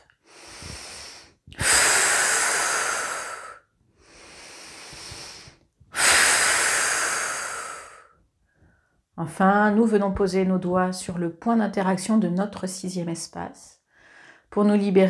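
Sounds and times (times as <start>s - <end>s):
slow deep breathing during guided relaxation: 0.0s - 9.0s
speech: 9.2s - 13.8s, 14.6s - 15.0s.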